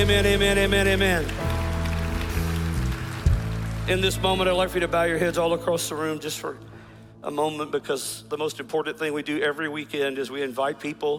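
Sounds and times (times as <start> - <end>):
speech: 0.0 - 1.5, 3.9 - 11.1
audience clapping: 0.0 - 5.0.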